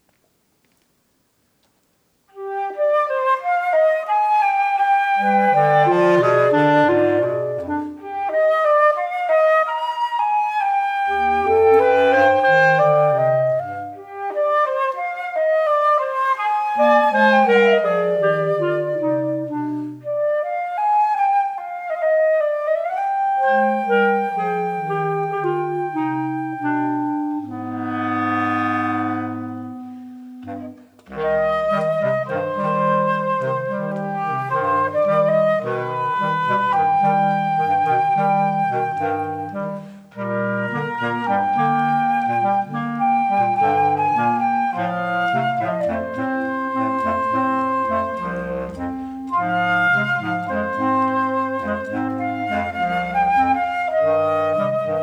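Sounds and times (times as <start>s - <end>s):
bossa nova music: 2.4s - 55.0s.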